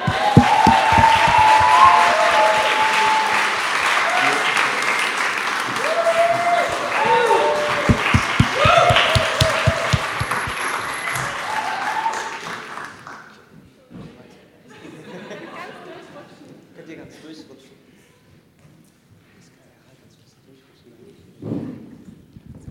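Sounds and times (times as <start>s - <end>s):
cheering and raised voices: 0.0s - 13.1s
sustained applause from a large audience: 0.0s - 13.2s.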